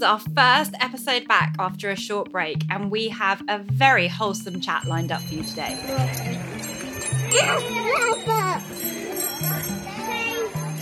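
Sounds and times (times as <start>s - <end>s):
speech: 0.0s - 6.6s, 7.3s - 9.8s
bike bus bells: 4.1s - 10.7s
children passing: 5.2s - 10.7s.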